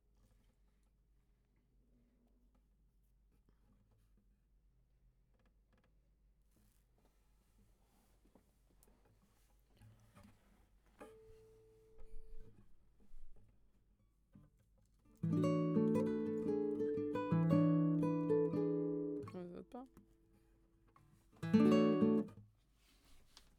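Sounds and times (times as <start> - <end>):
guitar: 11.0 - 13.4, 15.0 - 22.5.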